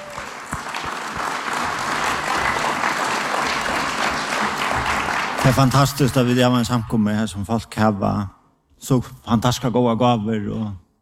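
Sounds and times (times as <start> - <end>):
audience applause at a Norwegian community gathering: 0.0 - 6.4
speech: 5.5 - 10.8.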